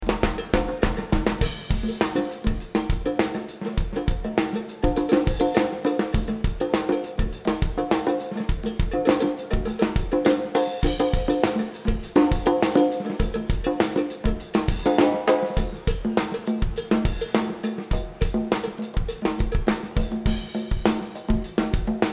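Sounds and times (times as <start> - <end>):
drums: 0.0 - 22.1.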